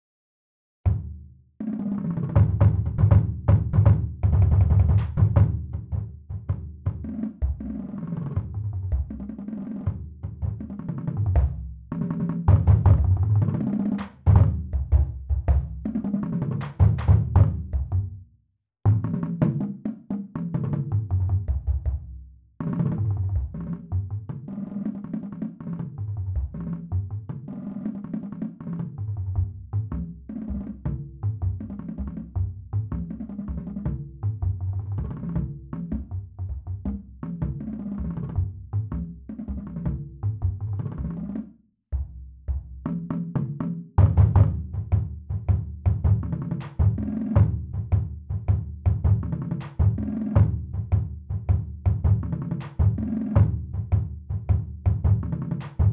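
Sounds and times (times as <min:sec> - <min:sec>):
bass: 0:00.8 - 0:55.9.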